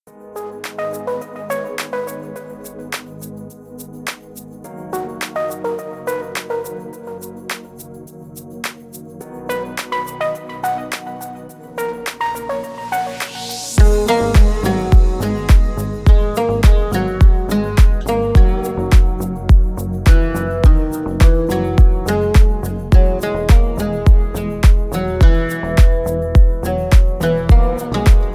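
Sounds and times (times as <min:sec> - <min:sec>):
eastern rhythms alarm clock ringtone: 0:13.5 - 0:28.3.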